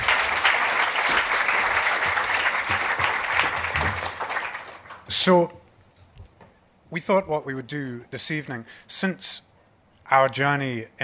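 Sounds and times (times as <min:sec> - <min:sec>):
audience applause: 0:00.0 - 0:05.1
speech: 0:05.2 - 0:05.6, 0:06.9 - 0:09.5, 0:10.1 - 0:11.0.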